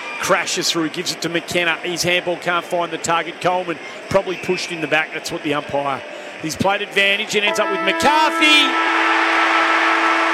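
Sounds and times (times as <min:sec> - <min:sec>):
speech: 0:00.2 - 0:09.2
stadium siren ending the football match at the MCG: 0:07.5 - 0:10.3.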